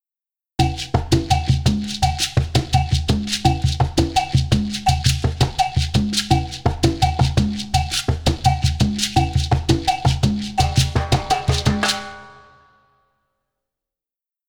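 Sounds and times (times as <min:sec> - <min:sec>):
bow beat: 0:01.1 - 0:12.6.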